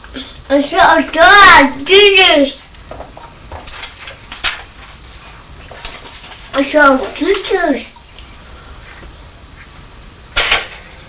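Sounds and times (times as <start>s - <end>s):
speech: 0.2s - 2.6s, 6.6s - 8.0s
toaster popping up: 10.4s - 10.9s.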